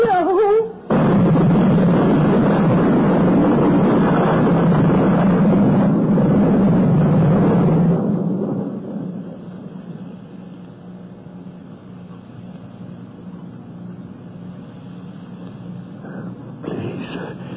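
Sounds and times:
loud thunder: 0.9s - 9.8s.

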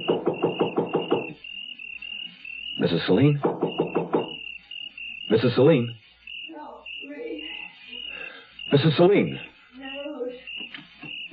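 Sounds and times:
knocking on a door: 0.0s - 1.4s, 3.4s - 4.4s
speech: 2.8s - 3.6s, 5.3s - 6.0s, 8.7s - 9.5s.

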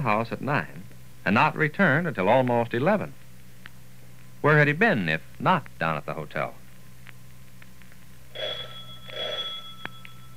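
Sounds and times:
speech: 0.0s - 3.2s, 4.4s - 6.6s
doorbell ringing: 8.4s - 10.3s.

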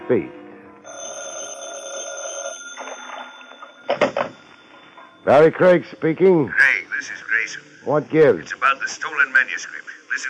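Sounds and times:
speech: 0.1s - 0.4s, 5.3s - 10.2s
telephone bell ringing: 0.9s - 5.4s.

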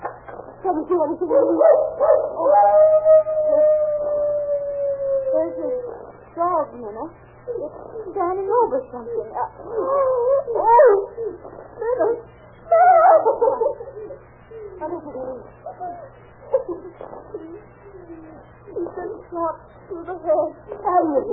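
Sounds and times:
low constant hum: 0.0s - 21.3s
speech: 0.6s - 3.4s, 6.6s - 21.3s
dog howling: 1.3s - 6.1s, 9.4s - 11.4s, 12.6s - 14.2s.

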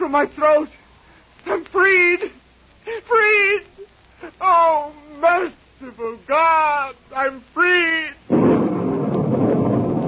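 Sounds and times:
speech: 0.0s - 0.8s, 1.4s - 8.2s
thunder of a breaking storm: 8.3s - 10.0s.

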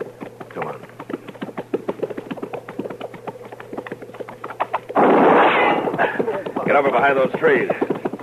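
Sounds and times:
speech: 0.6s - 0.9s, 6.8s - 7.9s
gunshot: 5.0s - 5.9s.

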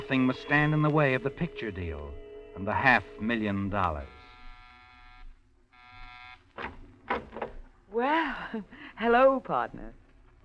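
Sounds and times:
low hum: 0.0s - 5.5s
speech: 0.1s - 4.2s, 7.9s - 10.4s
apartment door buzzer: 3.9s - 6.6s.

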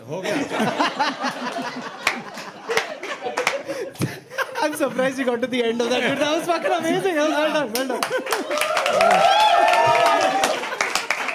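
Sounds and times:
speech: 0.1s - 1.3s, 4.8s - 10.7s
laughter: 0.2s - 11.3s
comedian clapping on stage: 2.0s - 3.7s, 7.7s - 11.3s.

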